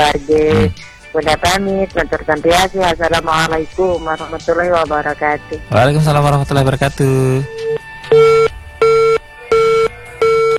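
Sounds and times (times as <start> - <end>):
speech: 0.0 - 7.8
phone line beeps after a call is cut off: 7.3 - 10.5.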